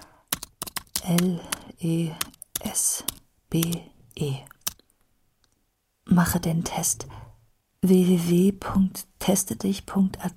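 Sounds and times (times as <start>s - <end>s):
typing on a computer keyboard: 0.3s - 1.6s, 2.2s - 3.8s
speech: 1.1s - 4.5s, 6.1s - 10.3s.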